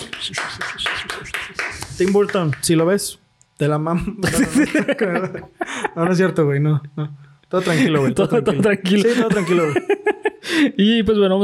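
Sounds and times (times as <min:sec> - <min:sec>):
applause: 0:00.0 - 0:02.7
speech: 0:00.2 - 0:11.4
laughter: 0:04.1 - 0:06.4, 0:07.6 - 0:10.5.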